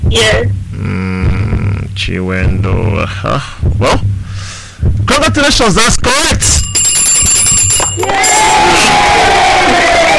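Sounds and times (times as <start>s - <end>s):
speech: 0.1s - 1.0s, 2.0s - 4.1s, 4.8s - 6.6s, 8.0s - 9.9s
high ringing tones: 6.4s - 9.2s
audience cheering and clapping: 7.9s - 10.1s.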